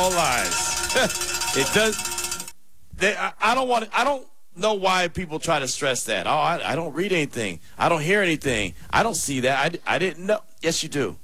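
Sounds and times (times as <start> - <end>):
speech: 0.0 - 2.2, 3.0 - 11.2
bell ringing: 0.0 - 2.6.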